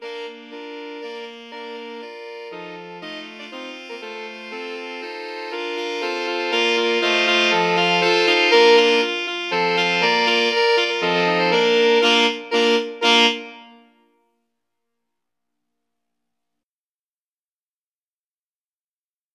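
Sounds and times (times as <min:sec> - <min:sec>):
alto saxophone choir: 0:00.0 - 0:14.0.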